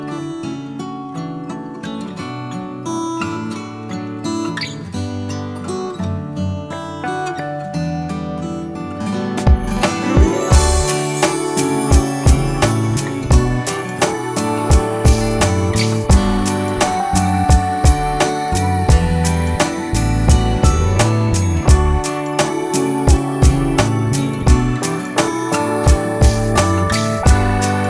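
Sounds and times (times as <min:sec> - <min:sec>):
full off-vocal instrumental version: 0:07.0 - 0:27.8.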